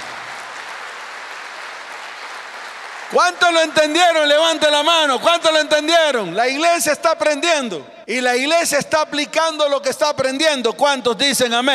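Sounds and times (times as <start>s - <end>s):
audience applause: 0.0s - 4.6s
speech: 3.1s - 11.7s.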